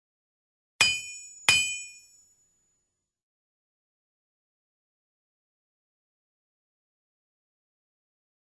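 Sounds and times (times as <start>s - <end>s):
anvil strike: 0.8s - 2.4s.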